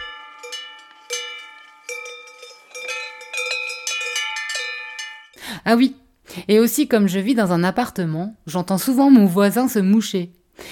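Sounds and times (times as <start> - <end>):
distant metallic bells clanking like mountain cowbells: 0.0 - 5.4
speech: 5.5 - 10.4.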